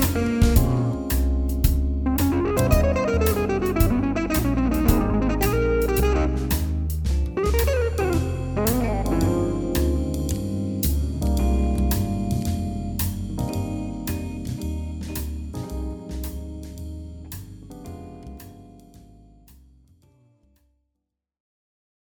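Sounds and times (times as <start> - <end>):
improvised guitar playing: 0.0 - 16.6.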